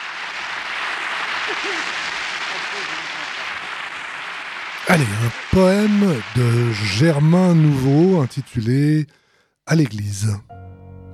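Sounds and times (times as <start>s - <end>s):
sustained audience applause: 0.0s - 9.0s
laughter: 1.0s - 3.7s, 4.8s - 9.0s
speech: 1.5s - 3.9s, 4.8s - 10.6s.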